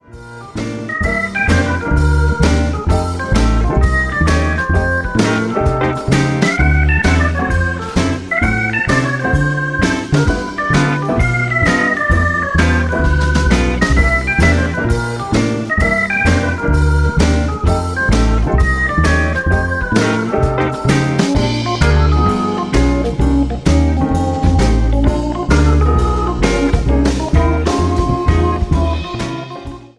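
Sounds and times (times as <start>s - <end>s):
jazz swing music: 0.0s - 29.9s.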